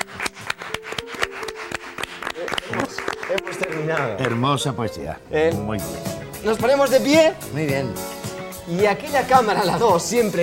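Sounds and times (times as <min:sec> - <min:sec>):
audience applause: 0:00.0 - 0:04.7
speech: 0:03.9 - 0:08.1, 0:08.7 - 0:10.4.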